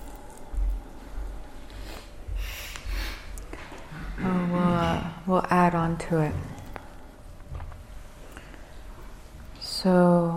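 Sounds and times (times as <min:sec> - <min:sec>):
deep purification breaths during a breathing exercise: 0:00.4 - 0:04.2, 0:08.1 - 0:09.2
speech: 0:05.3 - 0:06.5, 0:09.8 - 0:10.3.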